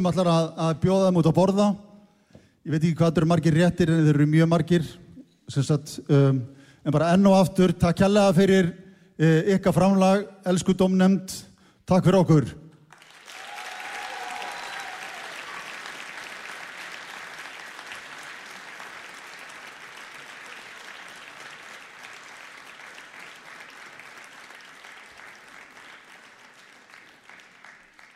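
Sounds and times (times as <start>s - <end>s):
speech: 0.0s - 1.9s, 2.6s - 12.6s
audience applause for a jury panel at a competition event: 12.9s - 28.1s.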